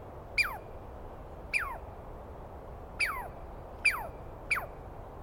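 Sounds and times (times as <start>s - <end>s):
Douglas squirrel calling: 0.4s - 0.7s, 1.5s - 1.9s, 3.0s - 4.8s.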